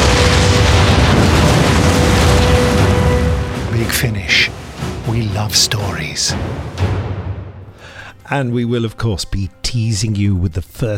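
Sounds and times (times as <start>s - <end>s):
explosion after a purple spark from a device in an audio drama: 0.0s - 7.8s
speech: 5.5s - 6.9s, 8.3s - 10.9s.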